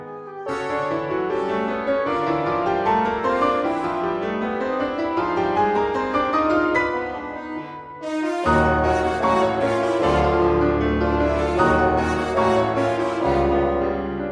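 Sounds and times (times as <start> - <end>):
strings: 0.5 - 14.2.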